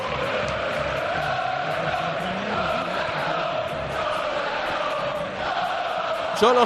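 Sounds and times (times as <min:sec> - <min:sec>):
stadium crowd chanting from the stands: 0:00.0 - 0:06.6.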